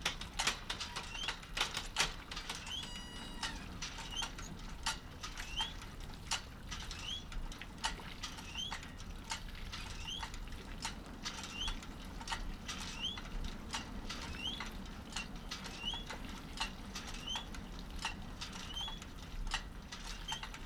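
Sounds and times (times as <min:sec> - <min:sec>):
windmill pump activated by the wind: 0:00.0 - 0:20.6.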